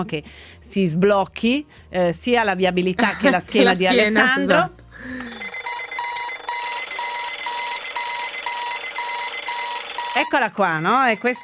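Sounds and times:
speech: 0.0 - 5.2, 10.2 - 11.4
alarm clock ringing with shrill electronic beeps: 5.2 - 11.4.

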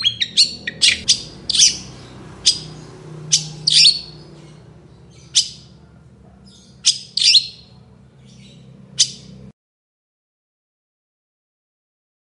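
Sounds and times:
Long-tailed shrike harsh chattering: 0.0 - 7.8, 8.4 - 9.3
low steady hum: 0.0 - 9.5.

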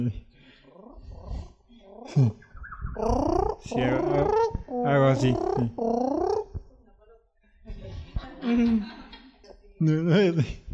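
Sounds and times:
speech: 0.0 - 0.3, 2.1 - 2.4, 3.0 - 6.2, 9.8 - 10.7
man imitating a canary's song: 0.8 - 6.6
laughter: 7.6 - 9.4.

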